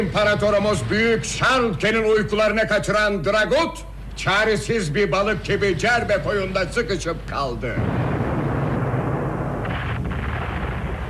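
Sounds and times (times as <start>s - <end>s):
speech: 0.0s - 8.1s
cannon fire: 7.7s - 11.0s.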